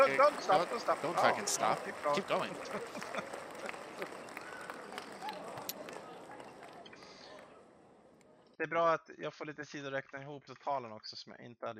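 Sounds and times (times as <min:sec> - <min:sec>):
laughter: 0:00.0 - 0:07.6
sustained applause from a group: 0:00.0 - 0:07.6
speech: 0:00.1 - 0:04.2, 0:08.6 - 0:11.7.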